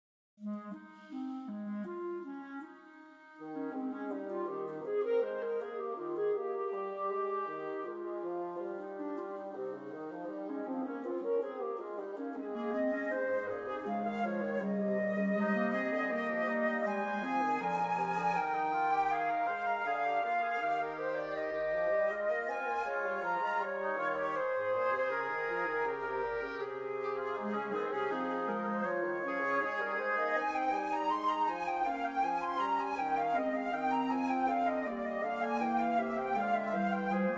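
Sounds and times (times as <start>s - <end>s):
woodwind quartet playing a fugue in major: 0.4s - 37.3s.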